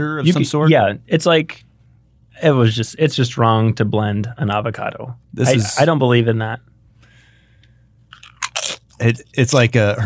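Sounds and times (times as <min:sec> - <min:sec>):
speech: 0:00.0 - 0:01.7, 0:02.4 - 0:06.7, 0:09.0 - 0:10.0
crunching tortilla chips being bitten and chewed: 0:08.1 - 0:09.0.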